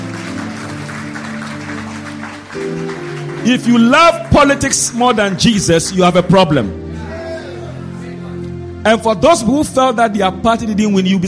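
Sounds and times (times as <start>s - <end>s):
audience clapping: 0.0s - 6.6s
sustained low musical tones: 0.0s - 11.2s
speech: 2.6s - 6.8s, 8.8s - 11.2s.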